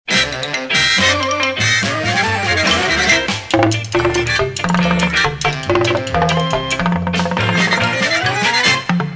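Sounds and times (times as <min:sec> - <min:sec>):
wacky boo sound: 0:00.1 - 0:08.9.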